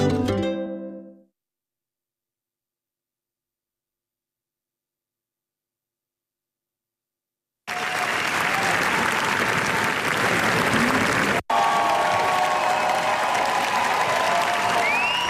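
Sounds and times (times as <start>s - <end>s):
audience ovation at a premiere: 7.7s - 15.2s.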